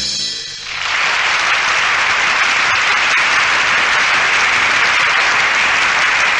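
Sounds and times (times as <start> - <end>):
theater audience sustained applause: 0.5 - 6.3.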